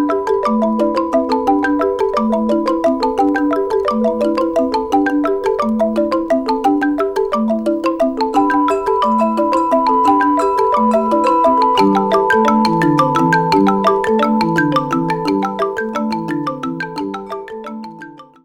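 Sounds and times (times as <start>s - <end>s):
angklung percussion: 0.0s - 18.4s.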